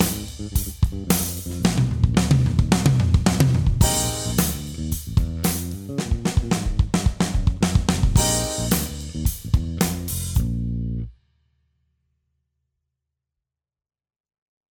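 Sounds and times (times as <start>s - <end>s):
pop drum fills: 0.0s - 10.6s.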